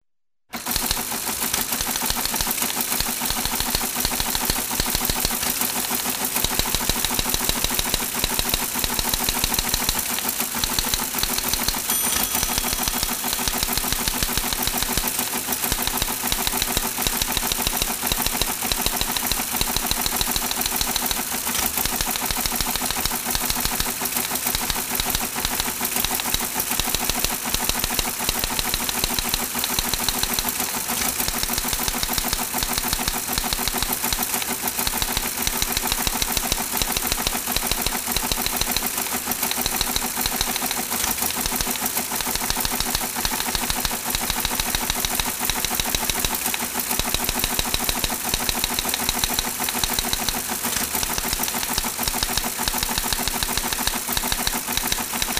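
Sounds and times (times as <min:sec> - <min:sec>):
teletype printing on punched tape: 0:00.5 - 0:55.3.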